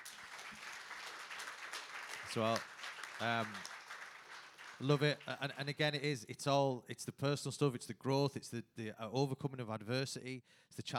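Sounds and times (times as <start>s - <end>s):
round of applause: 0.0s - 5.9s
speech: 2.3s - 3.7s, 4.8s - 10.9s.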